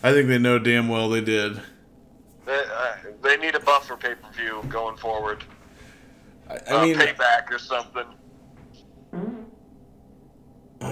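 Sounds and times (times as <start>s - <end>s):
speech: 0.0s - 1.8s, 2.5s - 5.6s, 6.5s - 8.2s
fart: 9.1s - 9.6s.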